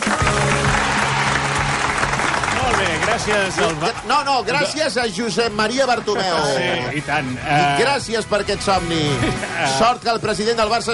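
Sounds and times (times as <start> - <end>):
applause: 0.0 - 6.3
speech: 3.2 - 10.9.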